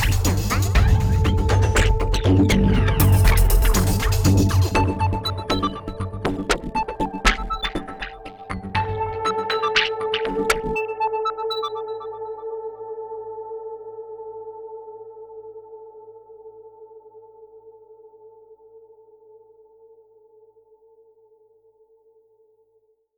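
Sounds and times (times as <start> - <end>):
electronic thriller EDM rhythm: 0.0 - 11.0.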